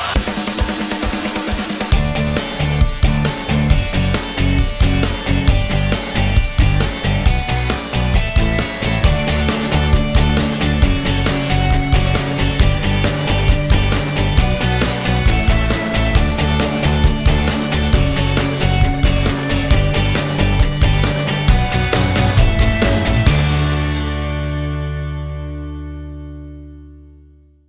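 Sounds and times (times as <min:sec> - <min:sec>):
instrumental music: 0:00.2 - 0:27.5.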